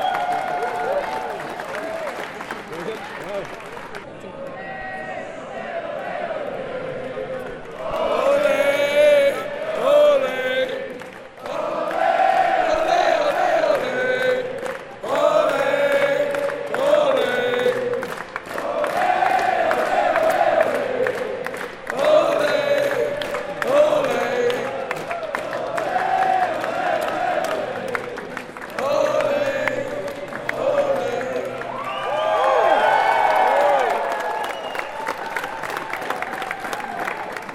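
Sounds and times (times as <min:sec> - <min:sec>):
large crowd cheering on the New York Stock Exchange floor: 0:00.0 - 0:04.7, 0:07.3 - 0:37.5.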